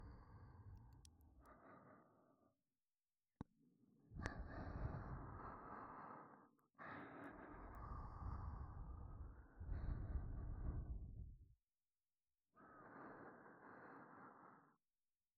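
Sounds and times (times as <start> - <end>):
breathing in both ears: 0.0 - 2.4, 4.2 - 11.2, 12.6 - 14.8.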